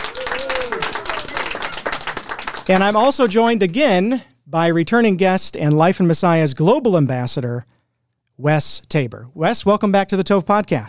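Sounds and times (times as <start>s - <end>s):
cheering voice whooping: 0.0s - 2.8s
crowd clapping: 0.0s - 3.9s
speech: 2.7s - 7.7s, 8.4s - 10.8s.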